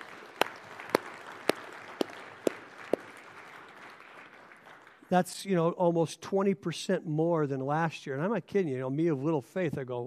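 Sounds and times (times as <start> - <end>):
audience applause: 0.0 - 5.1
speech: 5.1 - 10.0.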